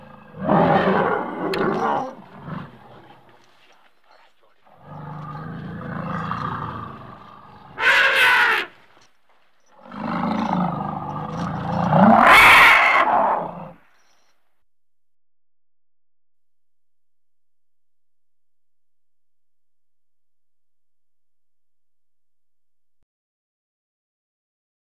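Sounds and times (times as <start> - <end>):
angry elephant trumpeting: 0.0 - 9.1, 9.7 - 13.8.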